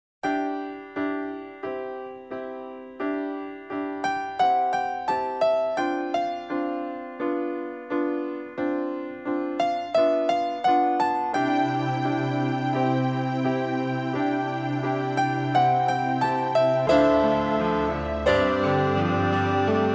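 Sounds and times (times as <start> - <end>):
easy listening and classical music: 0.2 - 19.9.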